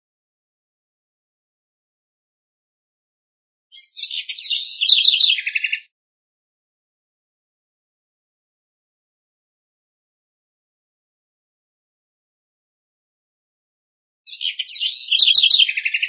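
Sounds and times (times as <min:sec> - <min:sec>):
house wren singing: 0:03.7 - 0:05.9, 0:14.3 - 0:16.0.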